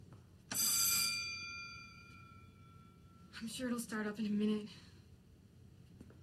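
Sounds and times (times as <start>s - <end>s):
stuck elevator alarm bell ringing: 0.5s - 3.4s
speech: 3.4s - 4.9s.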